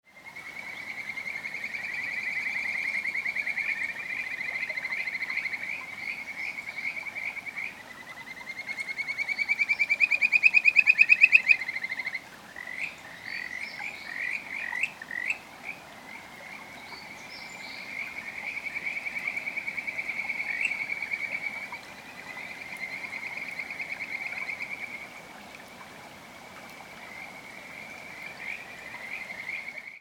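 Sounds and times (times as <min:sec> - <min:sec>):
Kajika frog calling: 0:00.2 - 0:25.2, 0:26.8 - 0:29.9.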